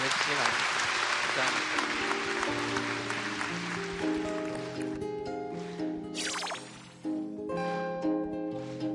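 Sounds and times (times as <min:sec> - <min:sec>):
crowd applause: 0:00.0 - 0:05.1
melodic musical accompaniment: 0:01.8 - 0:08.8.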